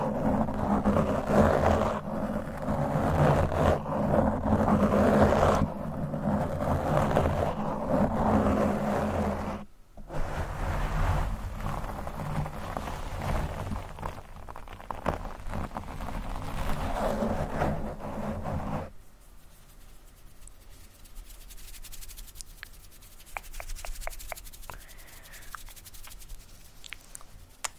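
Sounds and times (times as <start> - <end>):
microphone brushed and scratched: 0.0 - 27.6
sharp rapid taps and clicks: 22.6 - 24.9.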